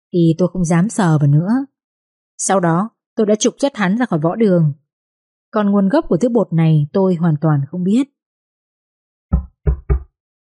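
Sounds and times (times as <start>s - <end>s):
speech: 0.1s - 1.7s, 2.4s - 4.8s, 5.5s - 8.2s
knocking on a room door: 9.3s - 10.1s.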